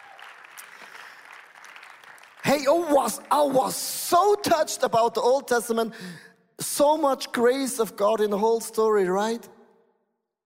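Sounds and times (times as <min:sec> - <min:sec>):
audience applause: 0:00.0 - 0:03.5
speech: 0:02.6 - 0:09.5.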